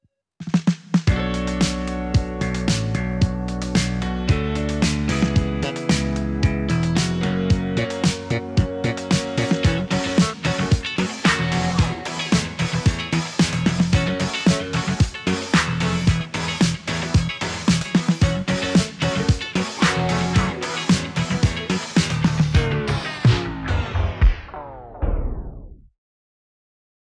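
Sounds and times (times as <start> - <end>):
disco party music: 1.1 - 25.6.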